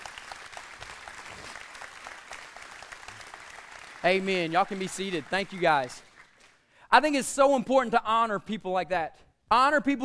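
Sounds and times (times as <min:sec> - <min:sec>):
audience clapping: 0:00.0 - 0:06.7
speech: 0:04.0 - 0:06.1, 0:06.9 - 0:10.0.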